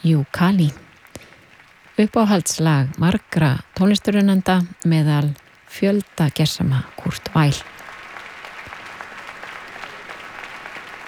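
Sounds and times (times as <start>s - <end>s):
speech: 0.0s - 0.8s, 2.0s - 7.8s
audience applause after a voice-and-piano performance at an arts festival closing concert: 0.5s - 3.5s, 5.9s - 11.0s.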